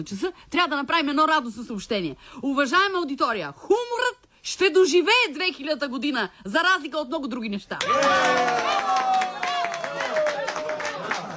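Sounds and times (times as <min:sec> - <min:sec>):
speech: 0:00.0 - 0:09.1
audience applauding: 0:07.8 - 0:11.3.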